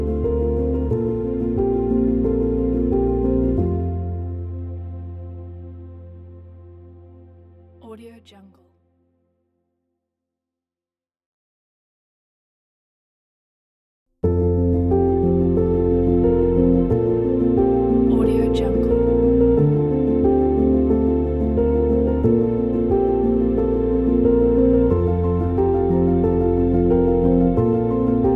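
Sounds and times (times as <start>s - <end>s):
soft piano background music: 0.0s - 8.0s, 14.2s - 28.3s.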